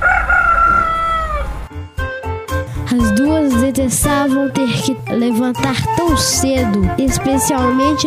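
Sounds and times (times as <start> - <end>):
rooster crowing: 0.0 - 1.7
speech: 3.0 - 8.0.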